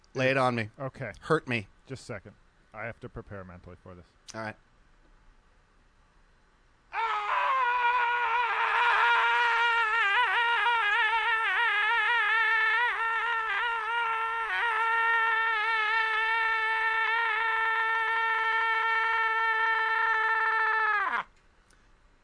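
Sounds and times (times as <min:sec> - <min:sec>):
speech: 0:00.2 - 0:04.7
man screaming ending in a rough gurgle: 0:06.9 - 0:21.3.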